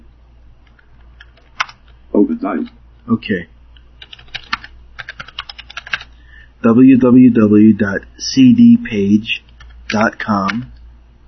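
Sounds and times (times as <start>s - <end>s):
keystrokes on a computer keyboard typing a URL: 0.6s - 2.0s, 3.7s - 6.2s, 9.4s - 10.8s
speech: 2.1s - 3.5s, 6.6s - 10.7s.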